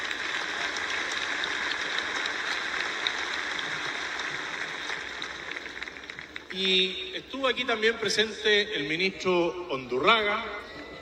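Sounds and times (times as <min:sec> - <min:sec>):
audience applause: 0:00.0 - 0:06.8
speech: 0:06.6 - 0:10.6.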